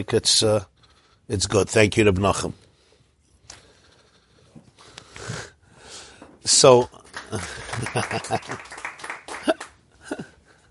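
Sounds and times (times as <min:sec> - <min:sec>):
speech: 0:00.0 - 0:00.7, 0:01.3 - 0:02.6, 0:06.4 - 0:08.7
audience clapping: 0:07.0 - 0:09.8
laughter: 0:07.2 - 0:10.6.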